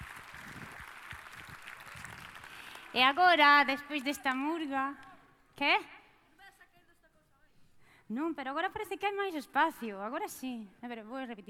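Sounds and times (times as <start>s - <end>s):
audience applause at a murga contest in Pontevedra: 0.0s - 3.0s
speech: 3.0s - 6.0s, 8.1s - 11.4s.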